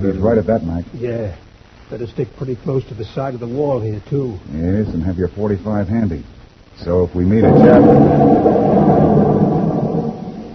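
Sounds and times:
speech: 0.0s - 9.2s
loud deep explosion roar: 7.3s - 10.5s.

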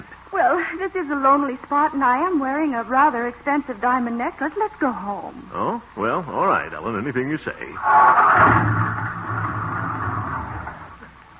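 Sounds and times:
speech: 0.3s - 9.2s
car engine running out of gas: 7.8s - 11.2s.

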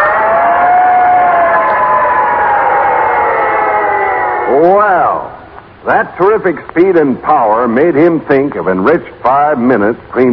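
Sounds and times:
big red fire engine siren roaring down the street: 0.0s - 5.4s
speech: 5.8s - 10.3s.

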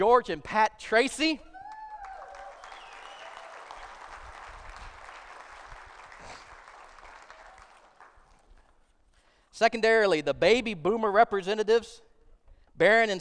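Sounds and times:
speech: 0.0s - 1.5s, 9.6s - 12.1s, 12.8s - 13.1s
cheers and whoops: 1.5s - 4.2s, 7.0s - 7.8s
audience applauding: 1.7s - 8.8s.

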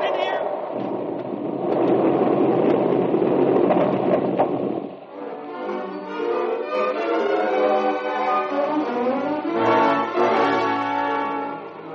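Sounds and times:
rotten timber roof collapsing in tunnel: 0.7s - 5.0s
orchestral music: 5.0s - 11.9s.

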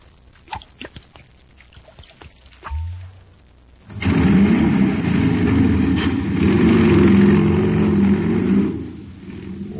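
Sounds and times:
supercharged jet cycle engine revving: 3.9s - 9.7s.

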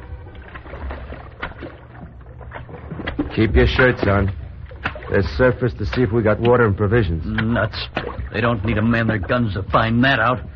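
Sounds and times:
lifeboat on the water, sloshing and splashing: 0.0s - 10.5s
speech: 3.4s - 4.4s, 5.1s - 10.5s.

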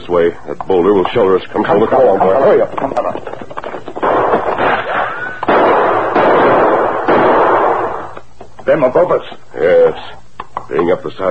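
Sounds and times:
speech: 0.1s - 3.0s, 8.7s - 11.2s
gunshots exchanged in canyon: 3.9s - 8.2s.

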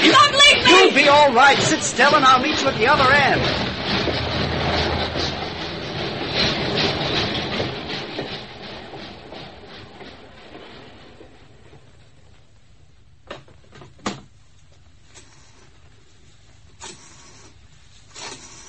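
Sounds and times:
train riding on rails: 0.0s - 13.9s
speech: 1.1s - 4.2s.

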